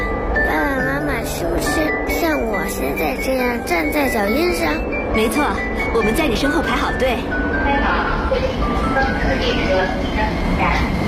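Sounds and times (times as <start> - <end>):
subway train pulling into the platform: 0.0 - 11.0
speech: 2.9 - 11.0.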